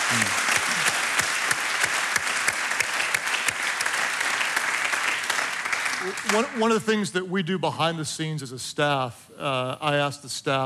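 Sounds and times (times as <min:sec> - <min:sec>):
crowd applauding: 0:00.0 - 0:06.8
speech: 0:00.1 - 0:00.4, 0:06.0 - 0:10.6.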